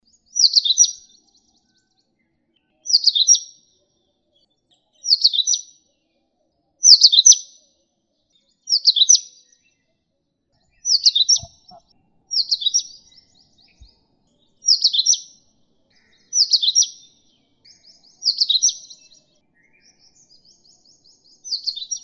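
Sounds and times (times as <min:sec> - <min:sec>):
Indian oriental magpie-robin whistling: 0:00.3 - 0:01.1, 0:02.8 - 0:03.5, 0:05.0 - 0:05.7, 0:06.8 - 0:07.4, 0:08.7 - 0:09.4, 0:10.7 - 0:14.0, 0:14.6 - 0:15.4, 0:16.1 - 0:17.1, 0:17.7 - 0:20.1, 0:21.4 - 0:22.0.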